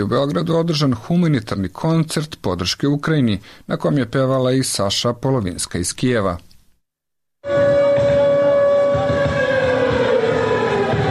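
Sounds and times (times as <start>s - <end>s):
speech: 0.0s - 6.5s
air raid sirens wailing at a charity concert in Belgrade: 7.4s - 11.0s.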